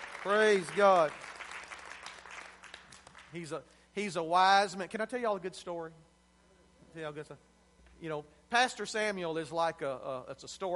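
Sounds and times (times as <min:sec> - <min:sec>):
audience hand clapping: 0:00.0 - 0:03.5
speech: 0:00.2 - 0:01.2, 0:03.3 - 0:06.1, 0:06.9 - 0:10.7.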